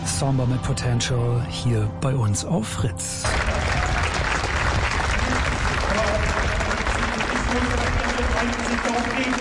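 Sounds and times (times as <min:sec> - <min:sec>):
speech: 0:00.2 - 0:03.7
large crowd applauding at outdoor memorial gathering: 0:03.3 - 0:09.3.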